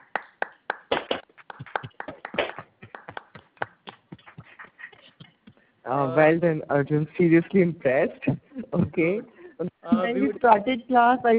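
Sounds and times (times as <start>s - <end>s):
clapping applause: 0.0s - 4.5s
speech: 5.8s - 11.3s.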